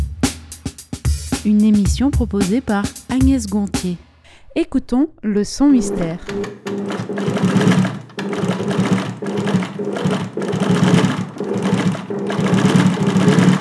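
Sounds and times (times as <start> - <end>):
speech: 1.4 - 6.7
sewing machine running: 5.8 - 13.5.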